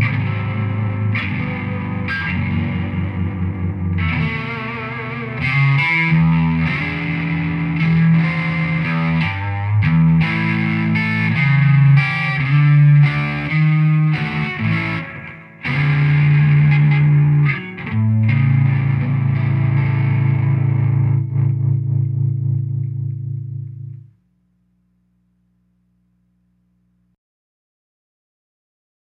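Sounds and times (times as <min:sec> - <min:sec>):
Telecaster electric guitar playing blues with moderate grind: 0:00.0 - 0:24.1.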